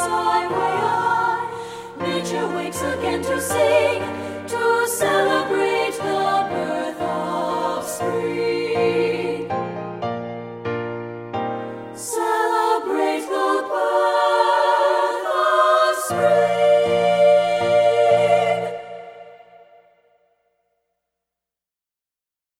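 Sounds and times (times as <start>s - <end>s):
SSA choir voices singing: 0.0s - 9.8s, 12.0s - 20.1s.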